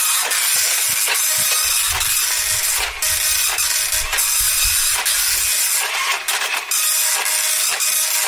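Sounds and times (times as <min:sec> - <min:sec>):
slow printer printing: 0:00.5 - 0:08.2.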